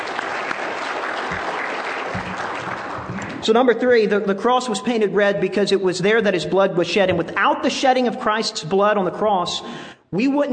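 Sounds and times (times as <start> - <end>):
audience applause: 0.0 - 3.4
speech: 3.4 - 10.5.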